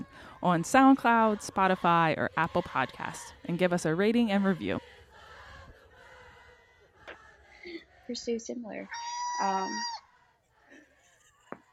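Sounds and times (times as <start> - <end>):
speech: 0.4 - 4.9, 8.1 - 10.0
cat yelling: 8.9 - 10.0.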